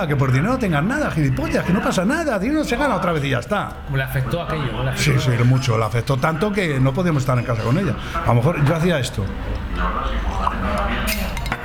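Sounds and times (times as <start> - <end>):
speech: 0.0 - 11.4
drinking glass being set down: 6.4 - 11.6.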